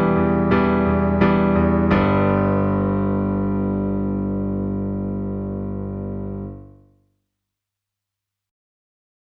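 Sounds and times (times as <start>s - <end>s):
piano: 0.0s - 7.0s.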